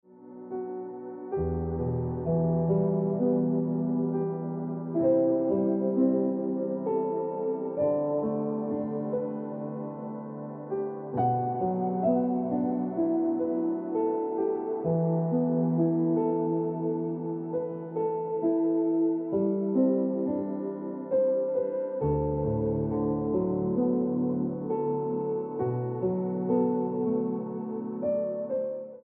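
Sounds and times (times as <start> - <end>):
piano music: 0.0 - 29.0.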